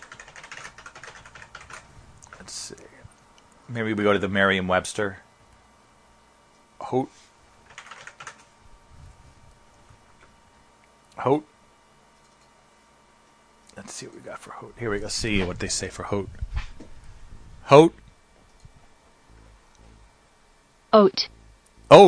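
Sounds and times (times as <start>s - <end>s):
typing on a computer keyboard: 0.0s - 2.5s, 7.7s - 8.5s, 12.2s - 12.5s
speech: 2.4s - 3.0s, 3.7s - 5.3s, 6.9s - 7.3s, 11.2s - 11.5s, 14.0s - 16.5s, 17.7s - 18.0s, 20.9s - 22.0s.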